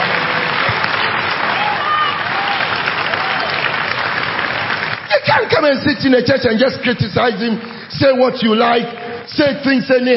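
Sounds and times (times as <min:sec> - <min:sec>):
audience applauding: 0:00.0 - 0:10.1
speech: 0:05.4 - 0:10.1.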